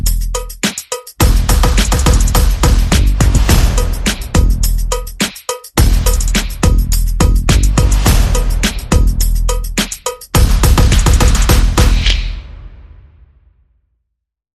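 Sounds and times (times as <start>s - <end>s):
bass: 0.0s - 0.6s, 1.2s - 5.2s, 5.8s - 12.4s
percussion: 0.0s - 13.2s.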